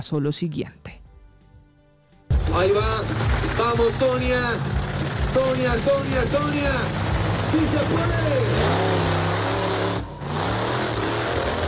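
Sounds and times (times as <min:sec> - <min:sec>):
speech: 0:00.0 - 0:01.0, 0:02.5 - 0:09.0
vehicle engine revving during stunt: 0:02.3 - 0:11.6.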